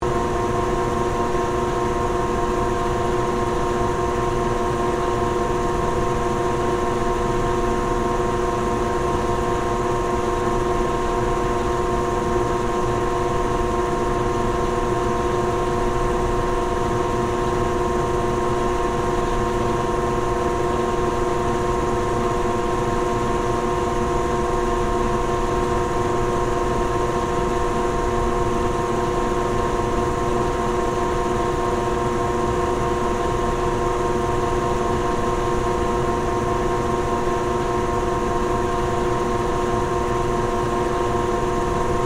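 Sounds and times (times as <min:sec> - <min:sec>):
Westinghouse industrial central fan motor running: 0:00.0 - 0:42.0.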